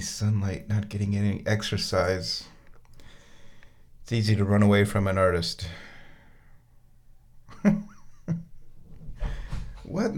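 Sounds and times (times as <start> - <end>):
speech: 0.0 - 2.5, 4.1 - 5.9, 7.6 - 8.4, 9.9 - 10.1
cat thumping up and down stairs: 9.0 - 10.0.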